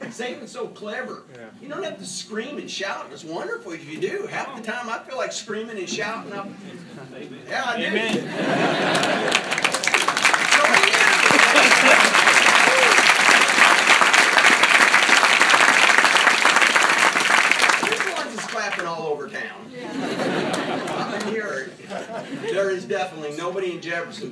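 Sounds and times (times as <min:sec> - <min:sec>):
speech: 0:00.1 - 0:09.7, 0:22.9 - 0:24.3
laughter: 0:07.9 - 0:16.2, 0:19.7 - 0:22.9
audience clapping: 0:08.5 - 0:19.0, 0:20.4 - 0:21.4.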